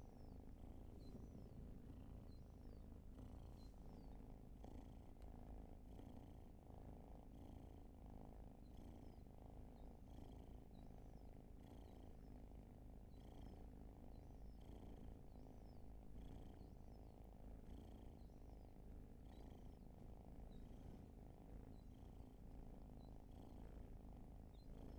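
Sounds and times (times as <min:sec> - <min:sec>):
faint bird chirps: 0:00.0 - 0:06.8, 0:07.4 - 0:24.9
cat purring: 0:00.0 - 0:24.9.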